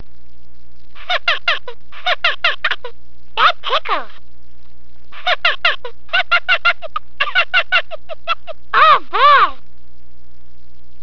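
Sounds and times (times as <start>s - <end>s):
person laughing: 1.0s - 3.7s, 5.2s - 9.6s.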